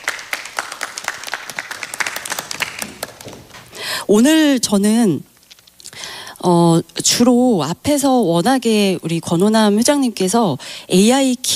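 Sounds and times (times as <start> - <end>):
audience applause: 0.0 - 3.8
speech: 4.1 - 5.3, 6.4 - 11.5.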